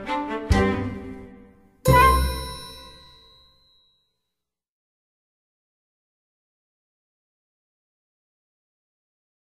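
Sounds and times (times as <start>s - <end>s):
instrumental music: 0.0s - 3.4s.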